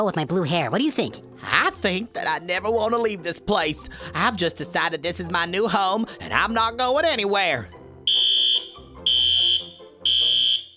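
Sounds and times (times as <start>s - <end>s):
speech: 0.0s - 7.8s
alarm ringing: 8.1s - 10.7s.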